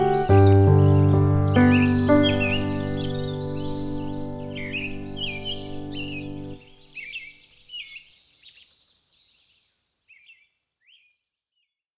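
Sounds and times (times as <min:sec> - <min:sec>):
piano: 0:00.0 - 0:06.8
forest ambience: 0:00.0 - 0:11.0.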